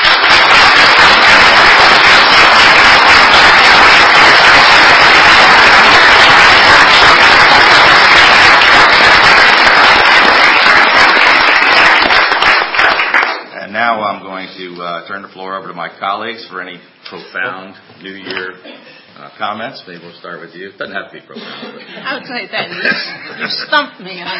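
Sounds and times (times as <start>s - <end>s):
crowd applause: 0.0s - 13.5s
speech: 15.0s - 24.3s
laughter: 21.3s - 24.3s.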